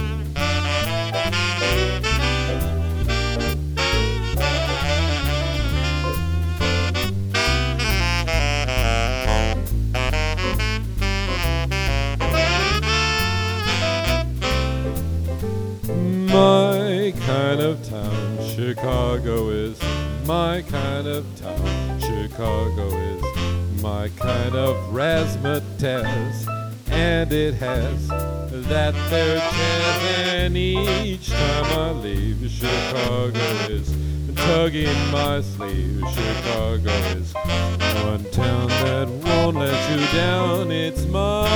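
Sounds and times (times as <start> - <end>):
piano: 0.0 - 41.5
saxophone: 0.0 - 41.5
person singing: 16.0 - 41.5.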